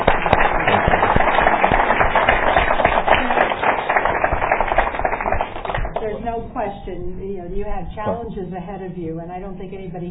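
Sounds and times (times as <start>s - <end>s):
round of applause: 0.0s - 6.2s
speech: 6.3s - 10.0s.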